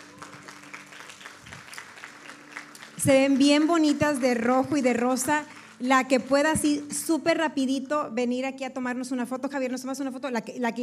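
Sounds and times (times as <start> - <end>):
audience applause: 0.0 - 6.5
speech: 3.0 - 10.8.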